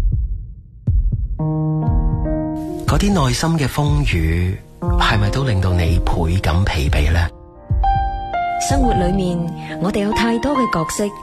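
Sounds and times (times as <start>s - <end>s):
heartbeat: 0.0s - 2.4s, 6.9s - 9.3s
speech: 2.9s - 7.4s, 8.6s - 11.2s.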